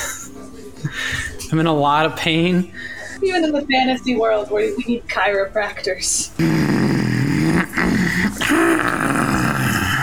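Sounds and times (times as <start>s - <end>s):
speech: 0.8s - 6.6s
voice imitating a gravelly, frightening yawn: 6.4s - 10.0s.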